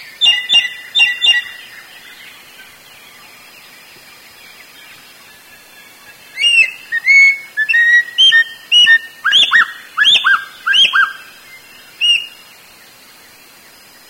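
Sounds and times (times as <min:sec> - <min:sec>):
Sooty-headed Bulbul calling: 0:00.0 - 0:02.2, 0:06.3 - 0:11.4, 0:12.0 - 0:12.4.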